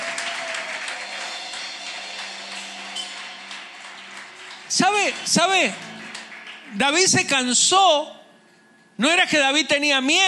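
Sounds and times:
audience applauding: 0.0s - 7.4s
speech: 4.7s - 5.9s, 6.7s - 8.2s, 9.0s - 10.2s.

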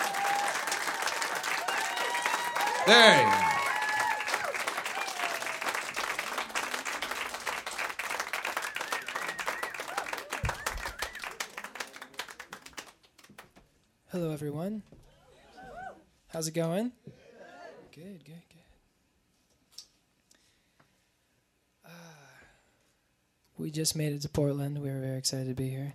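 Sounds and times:
audience applause: 0.0s - 13.5s
speech: 2.8s - 3.5s, 16.4s - 17.1s, 23.7s - 25.9s.

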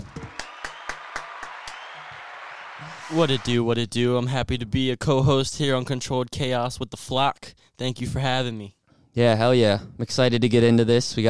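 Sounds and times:
hands clapping: 0.0s - 3.5s
speech: 2.8s - 11.2s.

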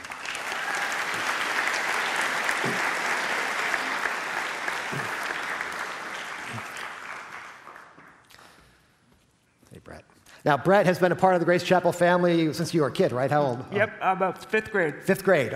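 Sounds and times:
congregation applause at Grace Chapel welcoming a guest to the platform: 0.0s - 8.6s
speech: 10.4s - 15.5s.

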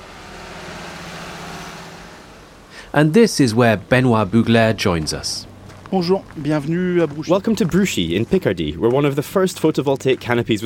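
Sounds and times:
huge tractor driving under a solar canopy: 0.0s - 10.6s
speech: 2.9s - 10.6s.

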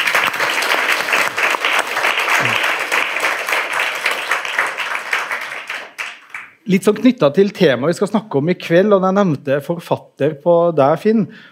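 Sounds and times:
audience applause: 0.0s - 6.6s
crowd murmuring: 2.4s - 2.7s
speech: 6.7s - 11.5s.

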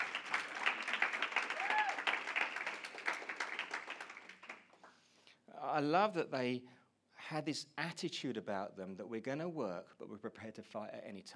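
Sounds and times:
audience round of applause: 0.0s - 4.7s
speech: 5.8s - 11.3s.

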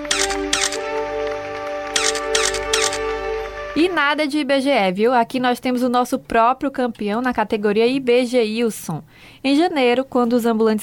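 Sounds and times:
camera flashes and shutter clicks: 0.0s - 1.0s, 1.8s - 3.1s
speech: 3.8s - 10.8s.

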